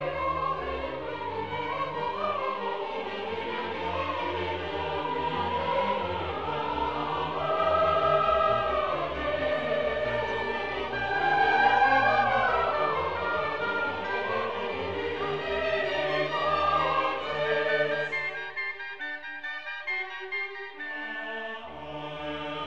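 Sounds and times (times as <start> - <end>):
choral mass: 0.0 - 22.6.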